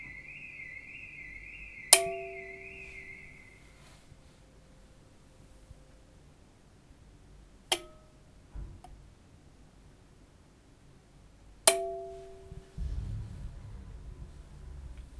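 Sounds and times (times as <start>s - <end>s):
electric switch: 0.0s - 4.0s, 7.7s - 8.2s, 11.7s - 15.1s.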